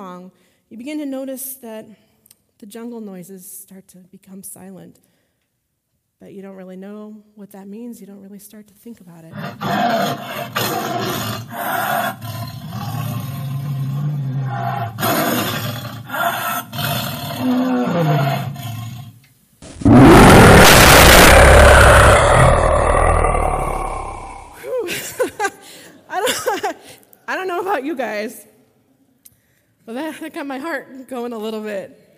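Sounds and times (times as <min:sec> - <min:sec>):
speech: 0:00.0 - 0:05.2, 0:06.2 - 0:12.4, 0:30.3 - 0:32.0
tiger roaring: 0:09.3 - 0:19.1, 0:19.7 - 0:24.6.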